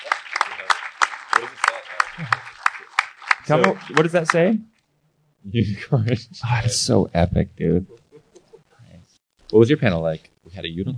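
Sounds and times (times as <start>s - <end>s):
audience applause: 0.0s - 4.6s
speech: 1.4s - 2.4s, 3.5s - 4.7s, 5.4s - 8.0s, 9.5s - 10.9s.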